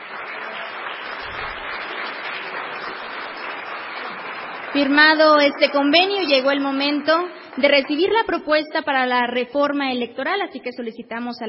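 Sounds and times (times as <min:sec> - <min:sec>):
audience applause: 0:00.0 - 0:08.4
speech: 0:04.7 - 0:11.4.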